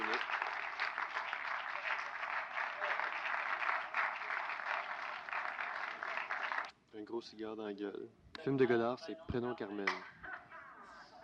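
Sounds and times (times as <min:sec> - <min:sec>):
loud applause from a large audience: 0:00.0 - 0:06.7
speech: 0:07.0 - 0:10.2.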